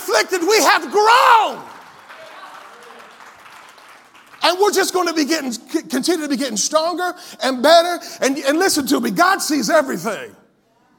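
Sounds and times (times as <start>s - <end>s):
speech: 0.2s - 1.8s, 4.4s - 10.4s
audience clapping hands: 0.9s - 5.3s.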